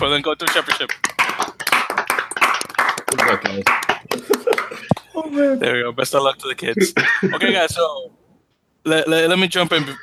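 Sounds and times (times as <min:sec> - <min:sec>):
speech: 0:00.0 - 0:01.5, 0:03.1 - 0:08.2, 0:08.8 - 0:10.0
people clapping: 0:00.0 - 0:07.8
laughter: 0:00.0 - 0:08.2, 0:08.9 - 0:10.0.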